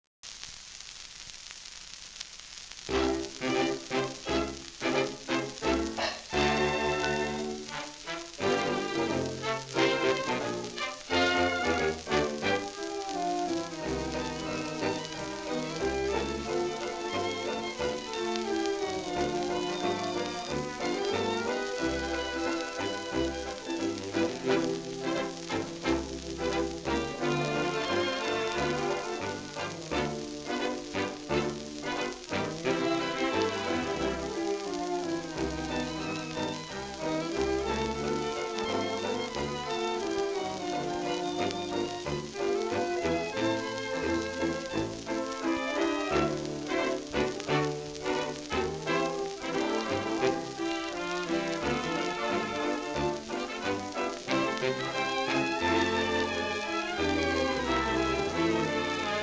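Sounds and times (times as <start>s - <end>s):
orchestra: 2.9s - 59.2s.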